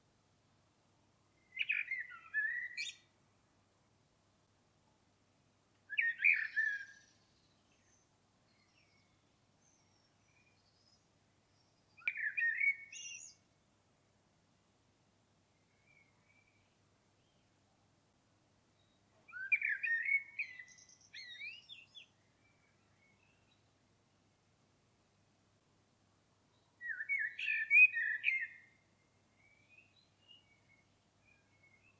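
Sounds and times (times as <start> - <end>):
common blackbird singing: 1.4 - 3.1, 5.9 - 13.4, 18.8 - 23.7, 26.6 - 31.9.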